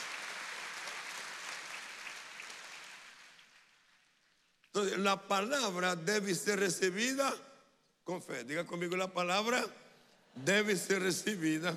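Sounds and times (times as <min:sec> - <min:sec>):
audience applauding: 0:00.0 - 0:04.2
speech: 0:04.8 - 0:09.8, 0:10.4 - 0:11.7.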